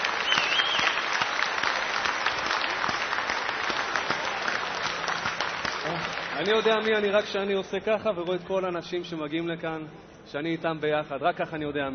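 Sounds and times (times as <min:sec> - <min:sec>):
audience applause: 0:00.0 - 0:07.4
speech: 0:06.4 - 0:11.9.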